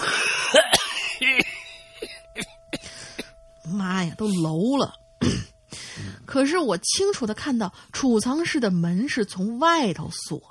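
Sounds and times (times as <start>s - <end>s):
coughing: 0.0s - 3.5s
speech: 3.8s - 5.5s, 6.3s - 10.5s.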